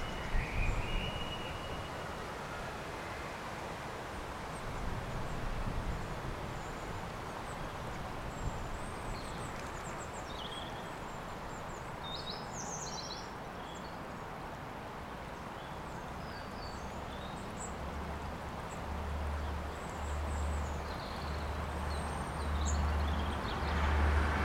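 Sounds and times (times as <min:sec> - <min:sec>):
River Ely soundscape: 0:00.0 - 0:24.4.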